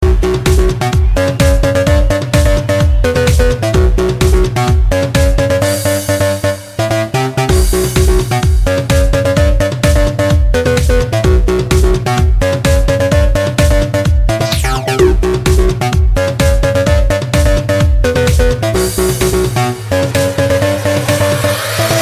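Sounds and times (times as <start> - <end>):
electro music: 0.0 - 22.0.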